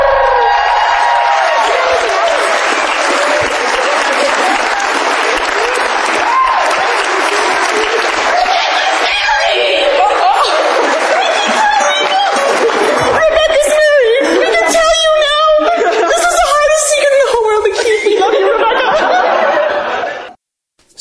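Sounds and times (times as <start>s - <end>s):
audience applause: 0.1s - 14.9s
laughter: 1.6s - 20.4s.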